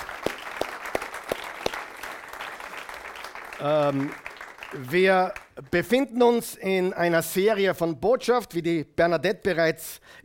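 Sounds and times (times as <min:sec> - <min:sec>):
audience applause: 0:00.0 - 0:05.5
speech: 0:03.6 - 0:10.2.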